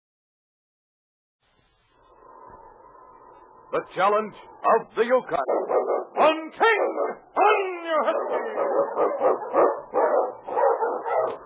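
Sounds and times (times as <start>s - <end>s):
speech: 3.7s - 10.4s
Eskimo sled dogs barking during a trail run through storm and snow: 4.6s - 11.4s.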